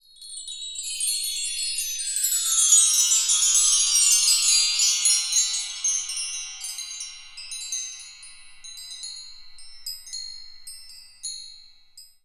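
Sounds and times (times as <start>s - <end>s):
chimes: 0.0s - 12.2s.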